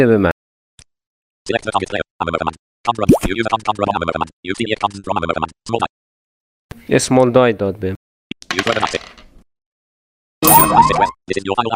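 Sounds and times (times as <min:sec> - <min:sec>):
speech: 0:00.0 - 0:00.3, 0:01.5 - 0:06.0, 0:06.9 - 0:08.0, 0:08.6 - 0:09.2, 0:10.8 - 0:11.7
video game sound effect marking the final round: 0:10.5 - 0:11.1.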